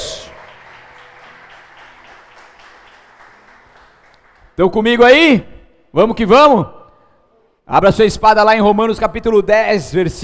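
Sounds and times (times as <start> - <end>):
audience applauding: 0.0 - 4.6
speech: 4.6 - 6.8, 7.7 - 10.2.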